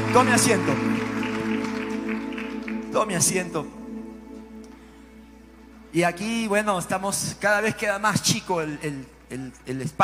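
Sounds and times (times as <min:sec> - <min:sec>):
audience applause: 0:00.0 - 0:03.0
speech: 0:00.1 - 0:01.0, 0:02.9 - 0:03.8, 0:05.9 - 0:10.0.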